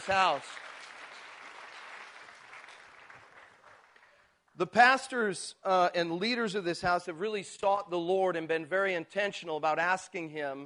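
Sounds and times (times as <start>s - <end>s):
speech: 0.0s - 0.6s, 4.6s - 10.6s
audience applause: 0.0s - 4.3s.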